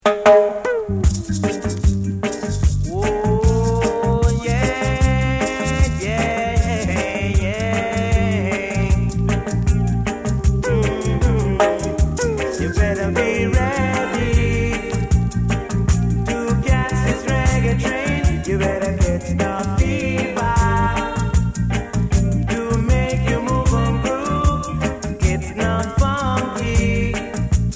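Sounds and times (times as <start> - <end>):
natural reggae beat: 0.0 - 27.7.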